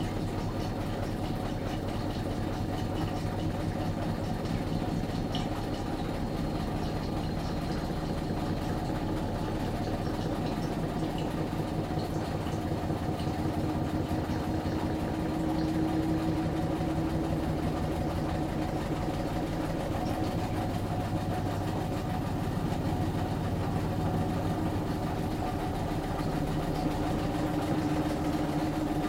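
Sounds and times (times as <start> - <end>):
front load washer spin noise: 0.0 - 29.0.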